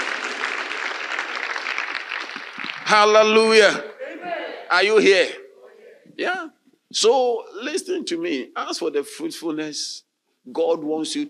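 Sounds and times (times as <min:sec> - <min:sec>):
audience applause: 0:00.0 - 0:03.4
speech: 0:02.9 - 0:03.9, 0:04.7 - 0:05.4, 0:06.1 - 0:11.2.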